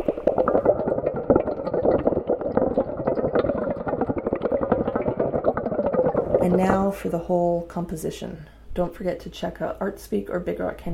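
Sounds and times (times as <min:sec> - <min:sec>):
bubbles blown through a straw in cold and hot water: 0:00.0 - 0:07.1
speech: 0:06.4 - 0:10.9.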